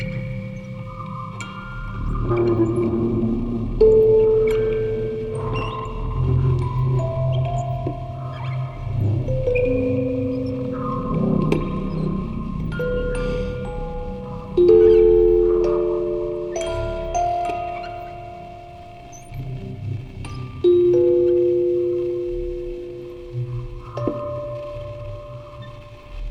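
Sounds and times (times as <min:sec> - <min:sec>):
field recording ambience: 0:00.0 - 0:26.3
quartet of music boxes playing: 0:00.0 - 0:26.3.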